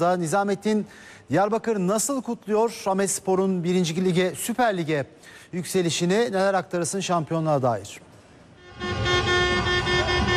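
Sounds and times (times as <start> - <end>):
speech: 0.0 - 8.1
car horns blaring in gridlocked Diyarbakır street traffic: 8.6 - 10.3.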